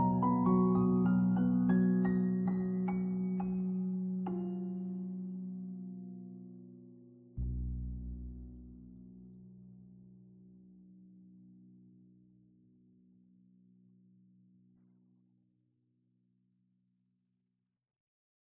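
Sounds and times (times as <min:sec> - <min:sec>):
Sunday ambience piano: 0:00.0 - 0:14.0.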